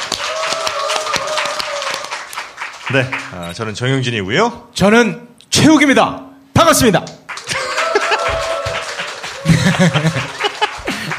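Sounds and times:
crowd applause: 0.0s - 3.4s, 7.3s - 11.1s
speech: 2.9s - 7.2s, 9.8s - 10.4s
laughter: 7.4s - 11.1s.

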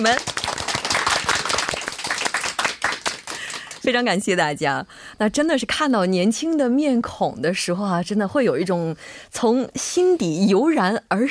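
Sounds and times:
speech: 0.0s - 0.4s, 3.8s - 11.2s
audience applause welcoming guests: 0.0s - 3.8s.

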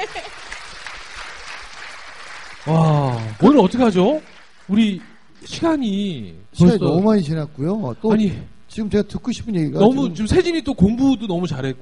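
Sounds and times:
audience applause: 0.0s - 5.6s
speech: 2.6s - 11.7s.

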